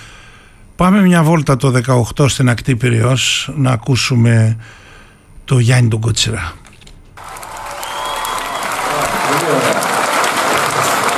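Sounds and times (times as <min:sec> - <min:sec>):
speech: 0:00.8 - 0:04.8, 0:05.5 - 0:06.6
audience applauding: 0:07.2 - 0:11.1.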